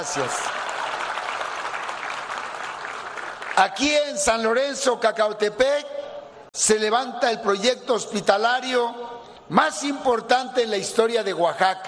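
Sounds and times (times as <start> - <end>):
speech: 0.0 - 0.6, 3.6 - 6.0, 6.6 - 11.8
applause for the local authorities: 0.0 - 4.3.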